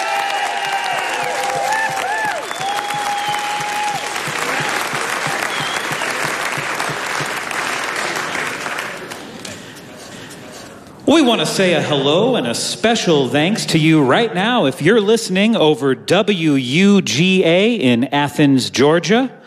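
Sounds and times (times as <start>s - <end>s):
audience applause: 0.0s - 9.4s
speech: 11.1s - 19.4s.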